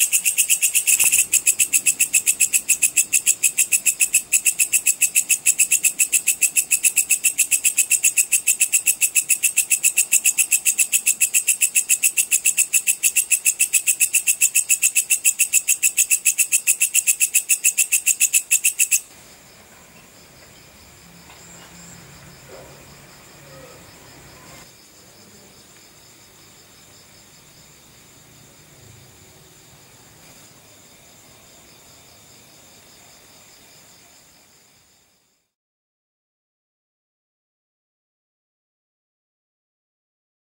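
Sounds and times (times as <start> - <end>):
small belalang kecek grasshopper chirping: 0.0 - 30.9.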